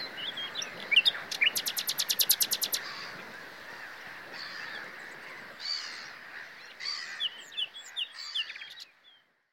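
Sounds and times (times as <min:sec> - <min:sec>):
common nightingale song: 0:00.0 - 0:03.3, 0:05.7 - 0:09.5.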